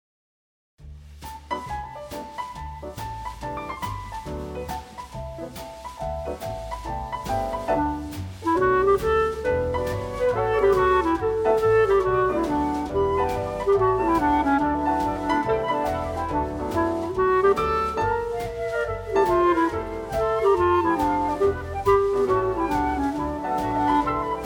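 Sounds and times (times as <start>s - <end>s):
clarinet: 6.3s - 24.4s.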